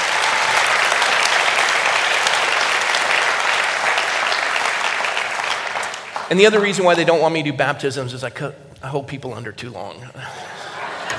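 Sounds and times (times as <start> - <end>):
large audience clapping: 0.0 - 7.3
speech: 6.3 - 10.6
laughter: 10.2 - 11.1.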